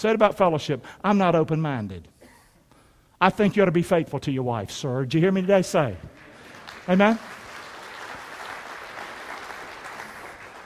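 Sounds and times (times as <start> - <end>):
speech: 0.0 - 2.1, 3.2 - 6.2, 6.9 - 7.4
crowd applauding: 6.1 - 10.6.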